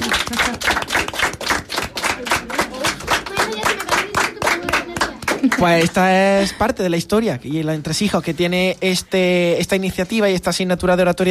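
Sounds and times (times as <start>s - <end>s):
class applause: 0.0s - 6.0s
speech: 5.6s - 11.2s.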